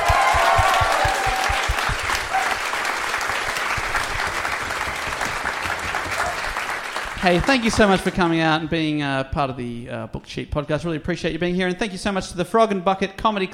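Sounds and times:
audience applause: 0:00.0 - 0:08.4
speech: 0:07.2 - 0:13.5.

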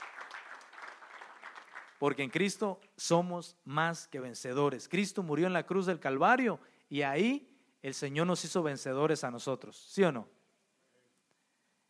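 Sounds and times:
audience applause: 0:00.0 - 0:02.0
speech: 0:02.0 - 0:10.4.

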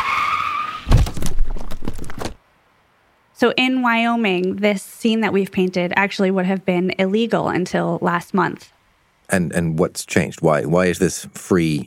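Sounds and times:
car tires skidding before hitting a deer: 0:00.0 - 0:01.0
loud thudding impact: 0:00.8 - 0:02.4
speech: 0:03.4 - 0:11.8.

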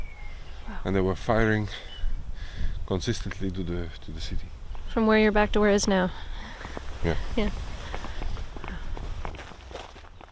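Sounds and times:
speech: 0:00.8 - 0:01.9, 0:02.9 - 0:07.7
footsteps walking along a narrow strip of grass between a cornfield and a potato field: 0:06.5 - 0:10.3.

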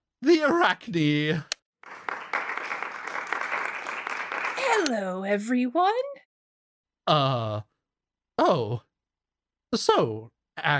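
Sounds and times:
speech: 0:00.2 - 0:01.5, 0:04.8 - 0:06.1, 0:07.1 - 0:07.7, 0:08.4 - 0:08.9, 0:09.7 - 0:10.7
audience applause welcoming a guest: 0:01.8 - 0:04.9.

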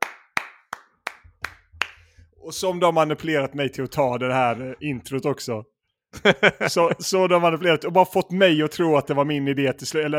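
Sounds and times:
clapping: 0:00.0 - 0:02.1
speech: 0:02.4 - 0:10.1
laughter: 0:06.2 - 0:07.3.

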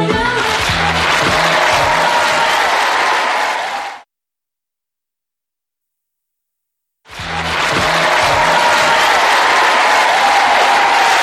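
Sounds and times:
studio audience applause: 0:00.1 - 0:04.1, 0:07.1 - 0:11.2.

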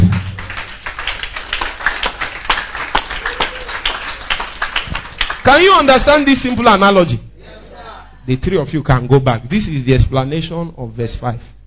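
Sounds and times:
audience clapping hands: 0:00.0 - 0:06.4
speech: 0:05.5 - 0:07.3, 0:08.3 - 0:11.6.

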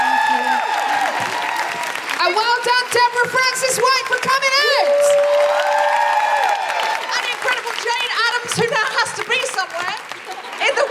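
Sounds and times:
cheers and whoops: 0:00.0 - 0:02.2, 0:04.4 - 0:08.0
audience applause: 0:00.0 - 0:10.8.

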